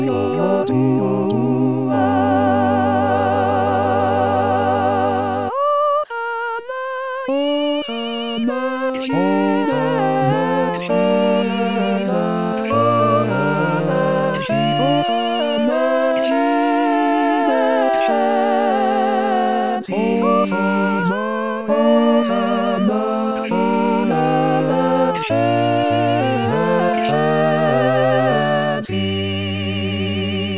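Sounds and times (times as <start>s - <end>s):
full choir singing a Sanctus: 0.0s - 30.5s.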